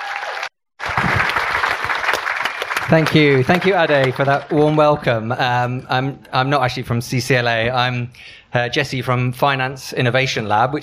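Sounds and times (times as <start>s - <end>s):
festival audience applauding panelists taking the stage: 0.0s - 5.0s
speech: 2.9s - 10.8s.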